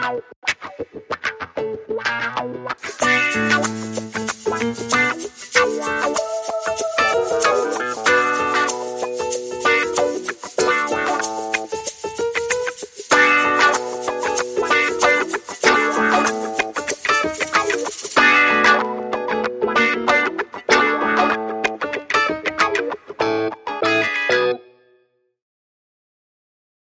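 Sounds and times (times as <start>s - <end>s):
guitars: 0.0s - 24.8s
keyboards: 2.9s - 22.6s.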